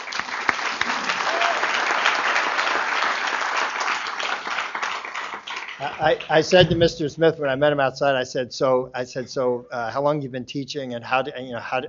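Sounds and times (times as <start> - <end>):
audience applause: 0.0 - 6.6
speech: 5.8 - 11.8.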